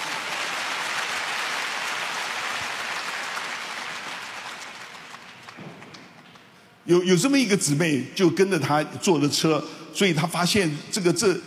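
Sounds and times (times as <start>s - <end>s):
audience applause: 0.0s - 6.4s
speech: 6.9s - 11.4s.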